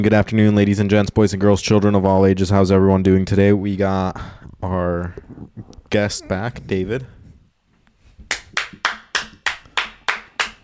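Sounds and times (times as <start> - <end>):
speech: 0.0 - 7.2
sharp hand claps echoing in a small reflective room: 8.3 - 10.6.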